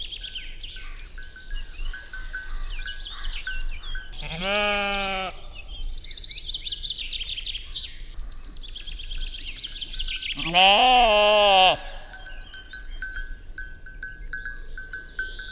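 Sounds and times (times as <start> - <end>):
birdsong twittering: 0.0 - 15.4
sheep bleating: 4.2 - 5.6, 10.4 - 12.2
speech: 4.4 - 5.0, 10.5 - 11.0.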